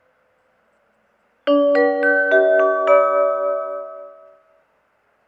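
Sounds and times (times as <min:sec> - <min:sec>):
Kyoto Station ambience: 0:01.5 - 0:04.6.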